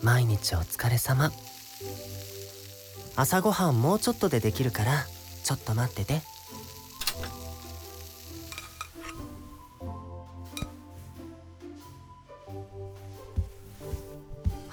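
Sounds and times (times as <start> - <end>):
speech: 0.0 - 2.4, 3.2 - 6.6
bacon and eggs frying in a pan for breakfast: 0.0 - 9.9, 10.5 - 11.2
utensil clinking and scraping against the pan: 8.4 - 9.6.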